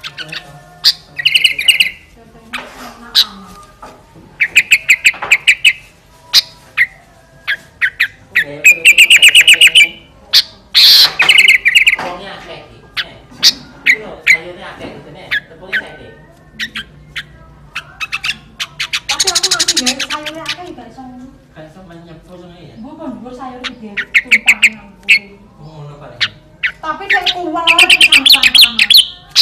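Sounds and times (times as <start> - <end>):
sooty-headed bulbul song in fierce style: 0.0 - 2.2, 3.1 - 12.0, 15.3 - 20.9, 23.3 - 29.4.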